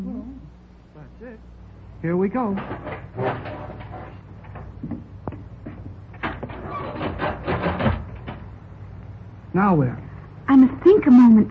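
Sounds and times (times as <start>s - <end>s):
speech: 1.2s - 3.6s, 9.6s - 11.5s
elevator door being yanked open: 2.5s - 4.7s, 6.1s - 8.5s.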